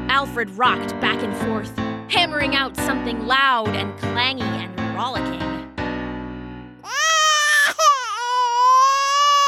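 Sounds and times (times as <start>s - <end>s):
speech: 0.2s - 5.6s
baby crying: 6.8s - 9.4s.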